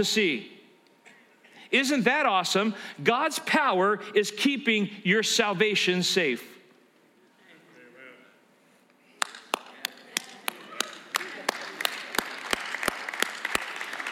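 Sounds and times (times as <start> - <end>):
speech: 0.0 - 0.5, 1.7 - 6.6
audience clapping hands: 9.2 - 14.1.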